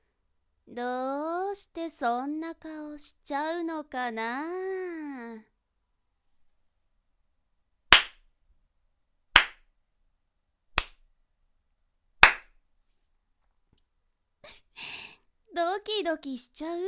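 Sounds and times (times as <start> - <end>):
speech: 0.7 - 5.5, 15.6 - 16.8
sharp loud hand claps: 7.9 - 8.2, 9.4 - 9.6, 10.8 - 11.0, 12.2 - 12.5.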